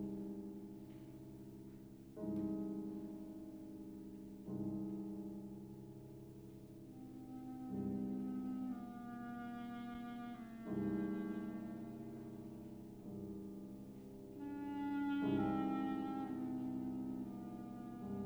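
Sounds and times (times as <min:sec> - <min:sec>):
piano: 0:00.0 - 0:18.2
clarinet: 0:05.8 - 0:18.2.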